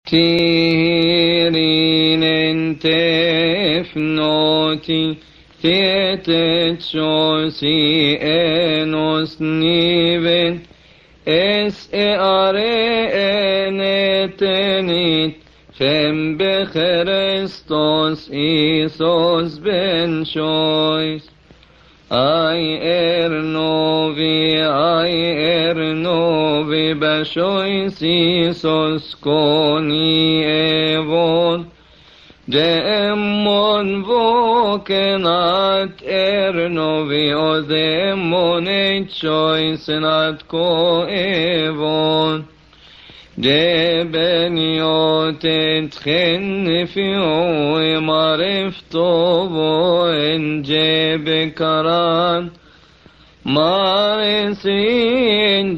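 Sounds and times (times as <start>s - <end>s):
gospel call and response: 0.1s - 55.7s.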